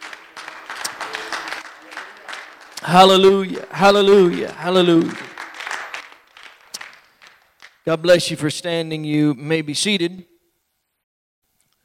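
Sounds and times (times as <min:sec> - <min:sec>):
audience applauding: 0:00.0 - 0:07.8
speech: 0:02.8 - 0:05.2, 0:07.9 - 0:10.3.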